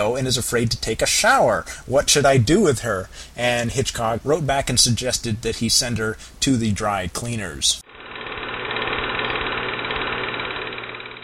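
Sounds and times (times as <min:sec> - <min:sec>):
speech: 0:00.0 - 0:07.8
film projector running: 0:07.8 - 0:11.2.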